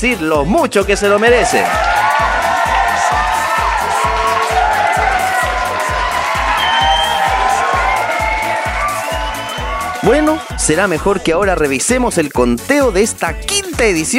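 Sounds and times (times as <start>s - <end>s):
speech: 0.0s - 1.9s, 10.0s - 14.1s
cheering: 0.9s - 10.7s
big applause: 1.4s - 10.0s.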